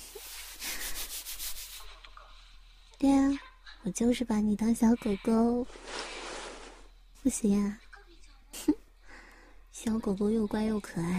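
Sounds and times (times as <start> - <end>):
hand patting and stroking a head: 0.0 - 2.1
speech: 3.0 - 5.9, 7.2 - 7.8, 9.8 - 11.1.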